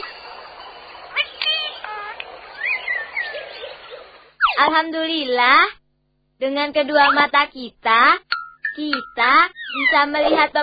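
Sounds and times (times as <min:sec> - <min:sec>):
birds chirping: 0:00.0 - 0:04.8, 0:08.5 - 0:10.4
speech: 0:04.6 - 0:05.8, 0:06.4 - 0:10.6.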